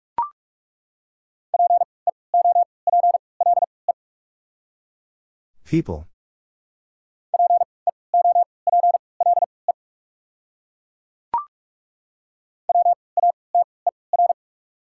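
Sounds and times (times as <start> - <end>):
Morse code tone at 45 words per minute: 1.6 - 3.7, 7.4 - 9.5, 12.7 - 14.4
speech: 5.7 - 6.1.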